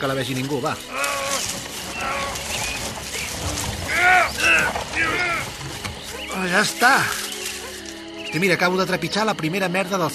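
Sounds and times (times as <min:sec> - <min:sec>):
speech: 0:00.0 - 0:01.3, 0:06.4 - 0:07.2, 0:08.3 - 0:10.1
caravan creaking as it is pushed: 0:00.0 - 0:07.7.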